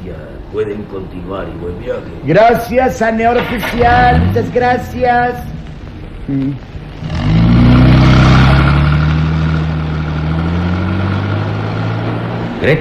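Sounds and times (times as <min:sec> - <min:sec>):
tyre and road noise: 0:00.0 - 0:12.8
speech: 0:00.1 - 0:05.6, 0:06.3 - 0:06.8, 0:12.6 - 0:12.8
car engine accelerating onto an asphalt road: 0:03.2 - 0:12.8.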